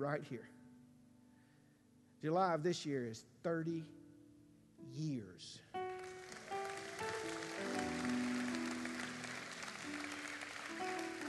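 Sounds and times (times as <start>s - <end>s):
speech: 0.0s - 0.6s, 2.2s - 4.0s, 4.8s - 5.8s
crowd applauding: 5.9s - 11.2s.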